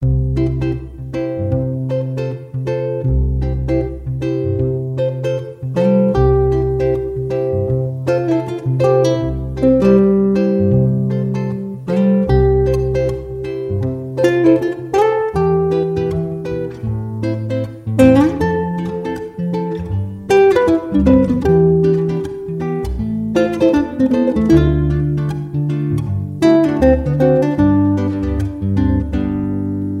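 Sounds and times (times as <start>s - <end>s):
instrumental music: 0.0s - 29.9s.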